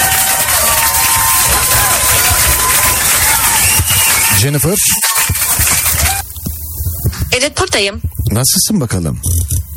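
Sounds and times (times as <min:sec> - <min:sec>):
applause welcoming a guest: 0:00.0 - 0:06.2
speech: 0:04.4 - 0:05.1, 0:07.4 - 0:09.6.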